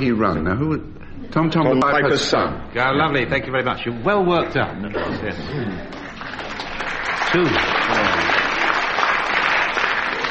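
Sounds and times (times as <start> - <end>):
speech: 0.0 - 6.0, 7.3 - 8.0
audience applause: 5.6 - 10.2.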